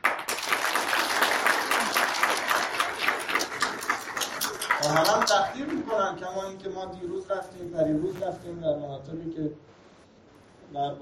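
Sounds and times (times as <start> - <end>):
audience applauding in someone's honor: 0.0 - 5.9
speech: 4.9 - 9.7, 10.7 - 11.0.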